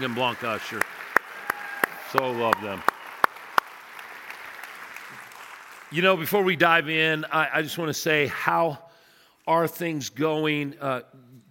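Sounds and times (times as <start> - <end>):
speech: 0.0 - 1.0, 2.1 - 2.9, 5.9 - 8.8, 9.5 - 11.4
audience applause welcoming a missionary couple from Peru: 0.0 - 6.2.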